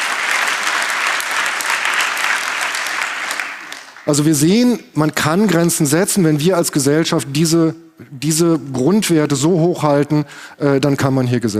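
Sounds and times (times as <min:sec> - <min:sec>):
audience applause: 0:00.0 - 0:04.2
speech: 0:04.1 - 0:11.5.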